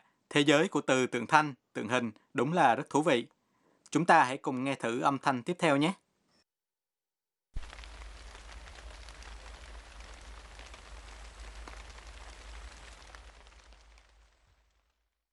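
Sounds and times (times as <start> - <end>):
speech: 0.4 - 6.0
light rain falling: 7.6 - 15.0.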